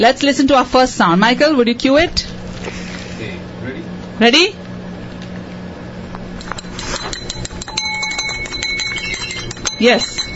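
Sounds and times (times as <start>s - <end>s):
speech: 0.0s - 3.3s, 4.2s - 4.6s, 9.8s - 10.1s
spoon stirring briskly in a cup: 6.4s - 10.3s.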